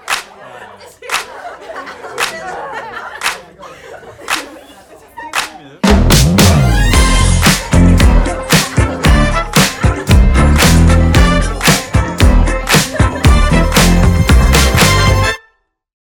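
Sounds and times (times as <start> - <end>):
laughter: 0.0 - 5.8, 7.2 - 15.2
instrumental music at 114 BPM in C: 5.2 - 15.5.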